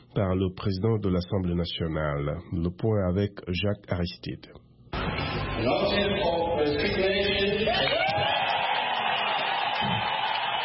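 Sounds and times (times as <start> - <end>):
speech: 0.2 - 4.6, 5.6 - 7.2
cheers of joy in the Zimbabwean Parliament: 5.0 - 10.6
applause in the Zimbabwean Parliament: 7.7 - 10.6.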